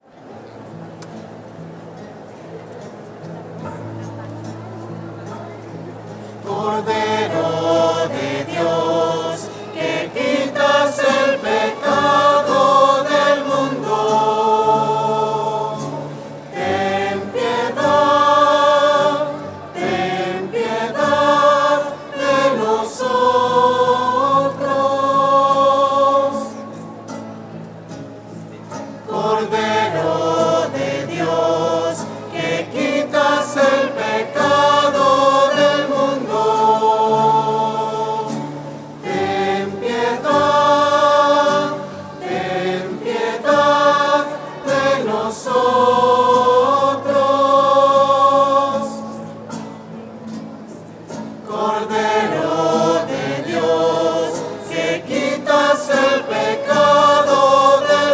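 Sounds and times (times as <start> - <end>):
voices singing: 6.3 - 27.0, 29.0 - 49.7, 51.2 - 58.1.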